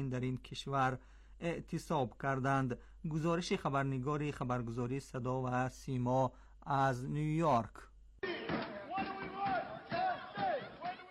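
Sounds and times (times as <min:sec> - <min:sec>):
speech: 0:00.0 - 0:07.9
protesting airport workers chanting: 0:08.2 - 0:11.0.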